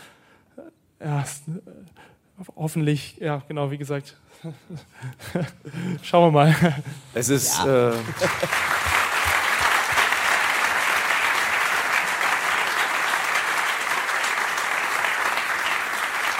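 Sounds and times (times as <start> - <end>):
speech: 0.6 - 8.8
laughter: 6.4 - 10.0
audience applause: 7.5 - 16.3.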